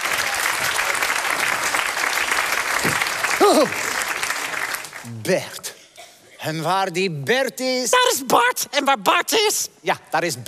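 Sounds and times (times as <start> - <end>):
audience applause: 0.0 - 5.1
speech: 3.5 - 3.8, 5.1 - 5.7, 6.4 - 10.4.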